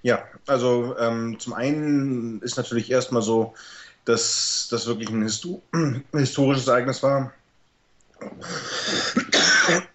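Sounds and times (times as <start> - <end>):
speech: 0.0 - 7.4, 8.2 - 9.9
person coughing with something caught in the throat: 8.2 - 9.9.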